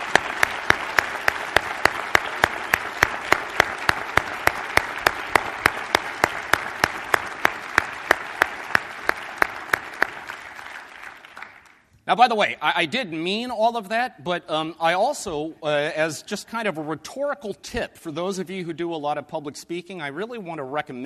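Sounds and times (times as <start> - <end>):
audience applause: 0.0 - 11.8
speech: 12.1 - 21.0.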